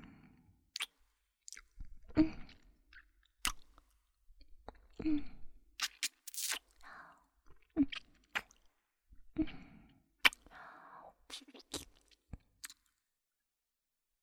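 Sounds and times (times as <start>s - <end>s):
ASMR mouth sounds of nibbling and sucking an earlobe: 0.7s - 1.7s, 2.9s - 3.8s, 5.8s - 6.8s, 7.9s - 8.7s, 10.2s - 10.5s, 11.3s - 12.9s.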